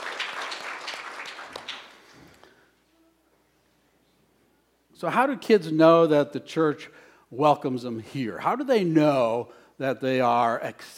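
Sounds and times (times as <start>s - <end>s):
audience applause: 0.0s - 2.4s
speech: 5.0s - 10.9s.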